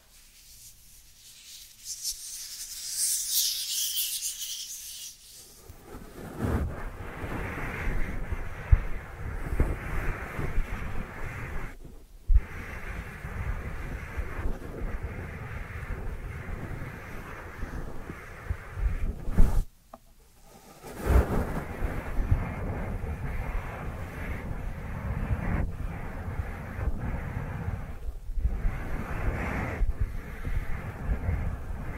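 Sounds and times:
dry hands rubbing together: 0.0 - 5.8
faint hiss: 0.0 - 31.9.

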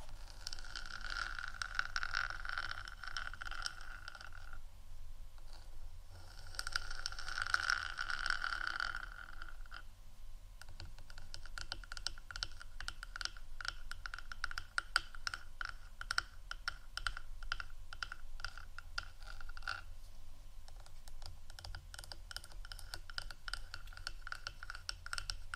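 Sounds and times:
ASMR soft scratching: 0.0 - 4.6, 5.4 - 9.9, 10.6 - 25.5
quick dense fingertip tapping: 10.6 - 19.9, 20.7 - 25.5.

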